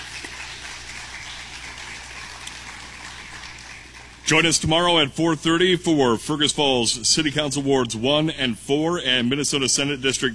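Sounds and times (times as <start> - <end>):
audience applause: 0.0 - 4.5
speech: 4.3 - 10.3.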